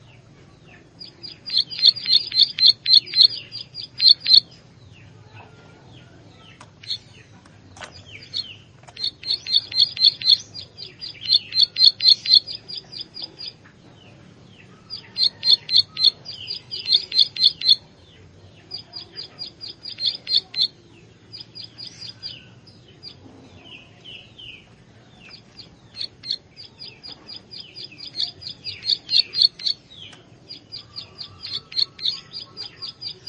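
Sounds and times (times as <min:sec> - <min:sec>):
Plain Prinia song with high notes: 0:00.0 - 0:33.2.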